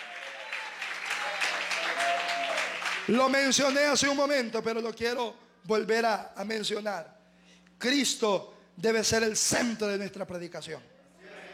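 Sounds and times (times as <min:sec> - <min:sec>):
audience applauding in praise: 0:00.0 - 0:03.2
speech: 0:03.1 - 0:07.2, 0:07.8 - 0:10.9.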